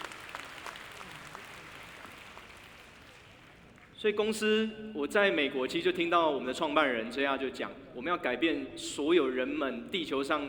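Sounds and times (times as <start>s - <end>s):
audience applause: 0.0s - 3.9s
speech: 4.0s - 10.4s.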